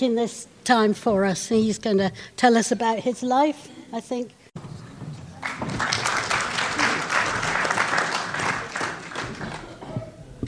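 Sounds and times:
speech: 0.0 - 4.4
audience applause: 5.3 - 9.9.

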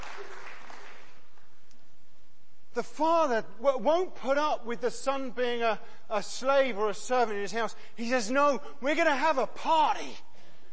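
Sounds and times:
audience applause: 0.0 - 1.4
speech: 2.8 - 10.3.

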